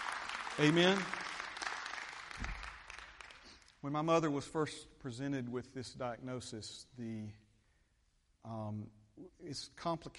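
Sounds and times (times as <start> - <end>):
audience applause: 0.0 - 3.6
speech: 0.6 - 1.2, 3.8 - 7.4, 8.4 - 10.1.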